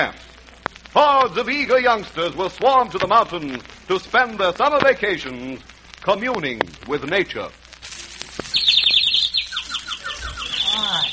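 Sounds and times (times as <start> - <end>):
speech: 0.0 - 0.3, 1.0 - 7.6
small bird chirping in a tree: 8.4 - 11.1.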